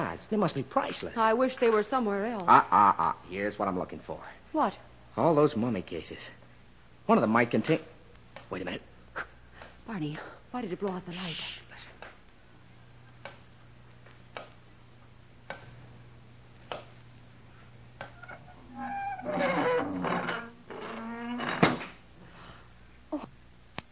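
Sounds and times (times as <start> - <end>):
speech: 0.1 - 6.4, 7.1 - 7.9, 8.5 - 9.3, 9.9 - 11.9
heavy stone door closing: 18.7 - 22.0.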